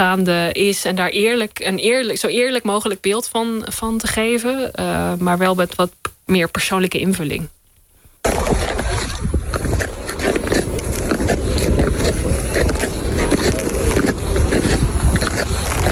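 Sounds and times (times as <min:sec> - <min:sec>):
speech: 0:00.0 - 0:07.6
ice skates gliding on natural ice: 0:08.2 - 0:15.9.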